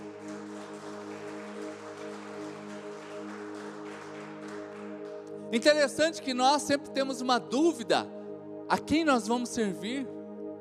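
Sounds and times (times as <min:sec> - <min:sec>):
audience applauding: 0:00.0 - 0:06.2
speech: 0:05.5 - 0:10.2.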